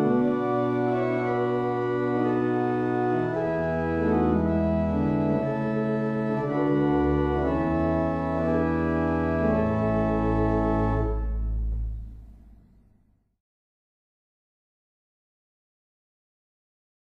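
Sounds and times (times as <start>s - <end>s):
barrel organs playing in Islington: 0.0s - 13.0s.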